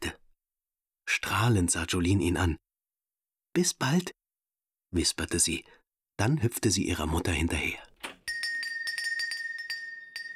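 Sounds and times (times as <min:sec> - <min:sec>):
speech: 0:01.4 - 0:02.6, 0:03.6 - 0:04.2, 0:04.9 - 0:07.9
shop door bell jingling: 0:08.1 - 0:10.3
steady high ringing tone: 0:08.3 - 0:10.3.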